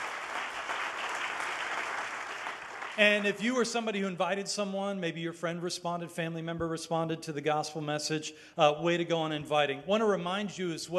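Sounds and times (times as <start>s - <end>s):
audience applause: 0.0s - 3.4s
speech: 3.0s - 10.9s.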